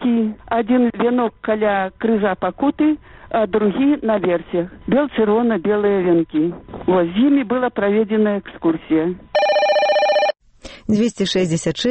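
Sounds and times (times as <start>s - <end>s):
speech: 0.3s - 9.3s, 10.9s - 11.8s
telephone ringing before answering machine: 9.4s - 10.4s.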